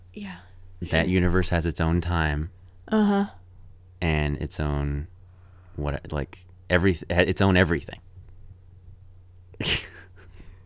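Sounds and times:
speech: 0.2 - 3.4, 4.0 - 5.1, 5.8 - 8.0, 9.6 - 9.9
person yawning: 2.9 - 3.4.

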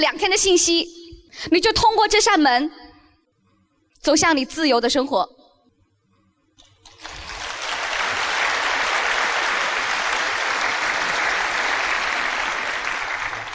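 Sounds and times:
speech: 0.0 - 2.8, 4.0 - 5.4
audience applause: 6.9 - 13.5.

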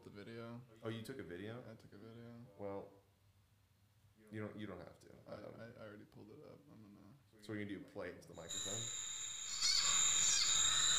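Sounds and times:
speech: 0.2 - 3.0, 4.2 - 9.2
coiled snake squealing in the grass: 8.5 - 10.9.

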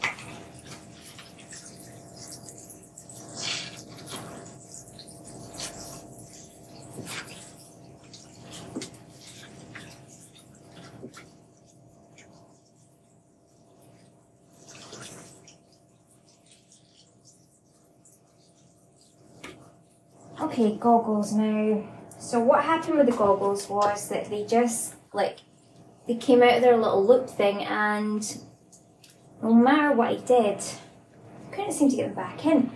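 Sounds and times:
washing a swimming head cap in water: 0.0 - 20.8
speech: 20.5 - 25.4, 26.1 - 28.4, 29.4 - 30.8, 31.8 - 32.7.

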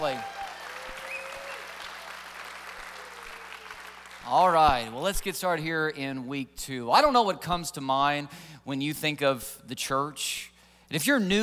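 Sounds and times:
church congregation clapping: 0.0 - 5.0
speech: 4.3 - 11.4.

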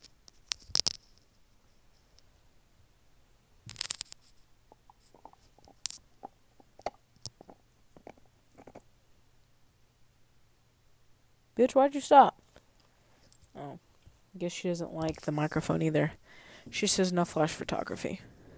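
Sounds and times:
dog chewing a bone: 4.8 - 8.8
speech: 11.6 - 12.3, 14.4 - 18.5.

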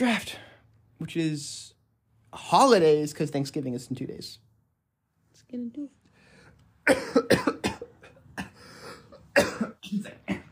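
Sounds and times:
speech: 0.0 - 1.7, 2.3 - 4.4, 5.4 - 6.0, 6.9 - 7.5, 9.9 - 10.3
person coughing after swallowing saliva the wrong way: 6.8 - 10.4.

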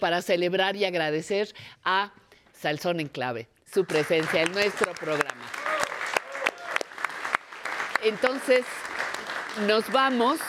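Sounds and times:
speech: 0.0 - 5.6, 8.0 - 8.9, 9.6 - 10.4
audience applause: 3.9 - 10.4.

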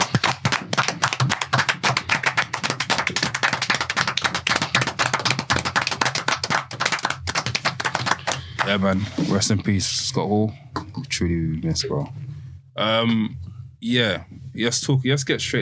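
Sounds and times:
several people clapping: 0.0 - 8.9
speech: 8.7 - 12.2, 12.8 - 15.6.

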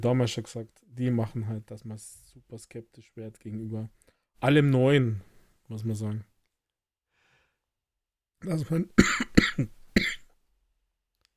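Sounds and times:
speech: 0.0 - 6.3, 8.4 - 9.8
person coughing after choking: 9.0 - 10.3.

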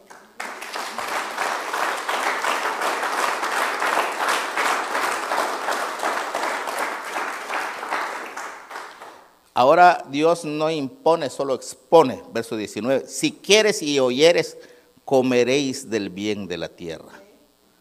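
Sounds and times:
audience applause: 0.0 - 9.4
speech: 9.6 - 17.2.

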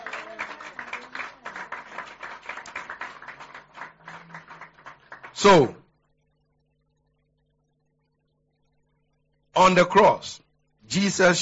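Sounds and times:
audience clapping: 0.0 - 5.8
speech: 5.4 - 5.8, 9.6 - 11.3.

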